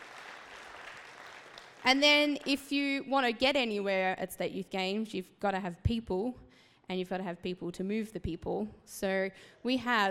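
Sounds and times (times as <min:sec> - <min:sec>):
audience applause: 0:00.0 - 0:01.9
speech: 0:01.8 - 0:10.0.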